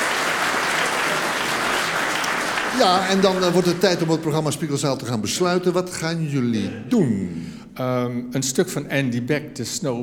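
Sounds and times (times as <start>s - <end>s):
audience applause for two guitarists at a live music performance: 0.0s - 4.5s
speech: 2.8s - 10.0s.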